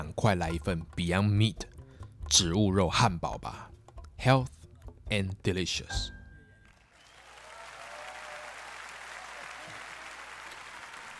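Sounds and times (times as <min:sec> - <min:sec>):
speech: 0:00.2 - 0:01.7, 0:02.3 - 0:06.2
audience applause: 0:06.7 - 0:11.1.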